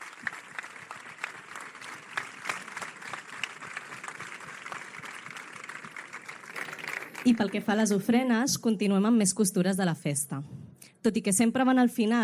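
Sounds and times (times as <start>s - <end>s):
applause: 0.0s - 8.1s
speech: 7.2s - 12.2s.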